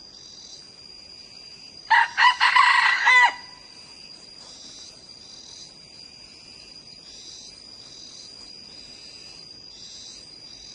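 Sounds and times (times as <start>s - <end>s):
high insect whine: 0.0s - 10.7s
red junglefowl crowing: 1.9s - 3.7s.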